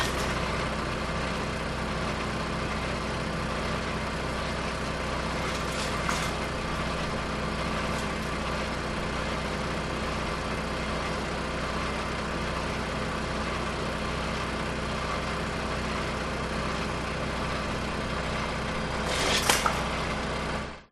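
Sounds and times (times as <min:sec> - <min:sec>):
industrial woodchipper chipping branches close to fence: 0:00.0 - 0:01.5, 0:04.0 - 0:10.4, 0:17.5 - 0:20.4
industrial woodchipper petrol engine running: 0:00.0 - 0:20.9.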